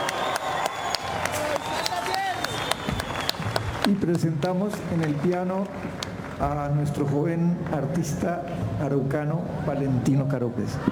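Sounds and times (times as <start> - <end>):
audience applause: 0.0 - 7.0
speech: 3.9 - 10.9.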